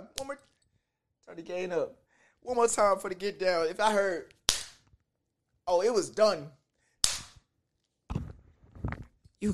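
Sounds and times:
speech: 0:01.4 - 0:04.4, 0:05.7 - 0:06.6, 0:09.4 - 0:09.5
leather belt snapping: 0:04.3 - 0:05.0, 0:07.0 - 0:08.4.

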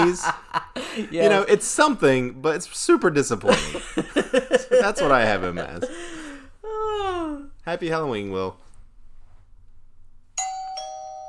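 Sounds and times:
laughter: 0:00.0 - 0:01.8, 0:03.4 - 0:07.3
speech: 0:00.0 - 0:06.1, 0:07.0 - 0:08.6
quiet low hum: 0:00.0 - 0:10.4
doorbell ringing with two bright chime strikes: 0:10.4 - 0:11.2.

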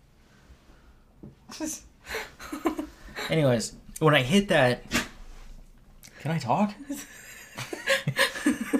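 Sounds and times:
speech: 0:01.6 - 0:02.7, 0:03.3 - 0:05.0, 0:06.2 - 0:07.2
dog sneezing: 0:04.9 - 0:05.2.

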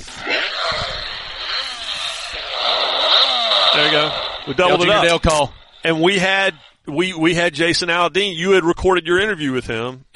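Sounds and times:
novelty dog toy electronic sound call: 0:00.0 - 0:06.8
speech: 0:04.5 - 0:10.1.

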